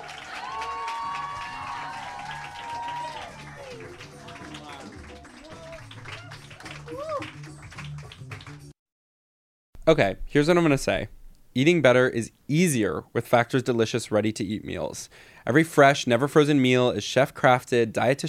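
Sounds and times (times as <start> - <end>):
whooping shouts: 0.0 - 7.4
large crowd clapping and cheering: 0.0 - 8.8
speech: 9.9 - 18.2.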